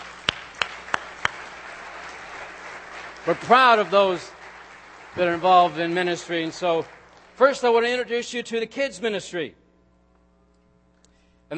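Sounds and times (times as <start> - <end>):
group clapping hands in unison: 0.0 - 8.0
speech: 3.2 - 4.4, 5.2 - 9.6.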